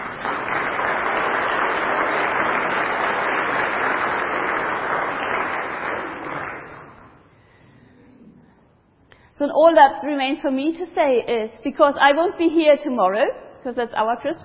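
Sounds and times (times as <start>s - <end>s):
audience applause: 0.0s - 7.2s
speech: 9.5s - 14.4s.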